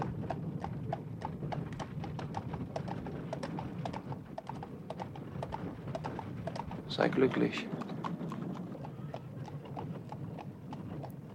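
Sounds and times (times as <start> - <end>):
horses' hooves clip-clopping as carriages depart down a street: 0.0 - 11.3
low rumbling of travelling carriages moving off: 0.0 - 11.3
speech: 6.9 - 7.8.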